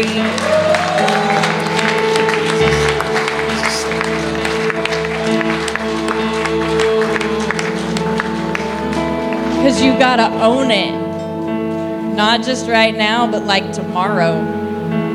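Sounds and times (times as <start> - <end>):
audience clapping: 0.0 - 10.0
sustained organ-like musical tone: 0.0 - 15.1
murmuring voices: 0.1 - 4.7
speech: 9.8 - 11.0, 12.2 - 14.6.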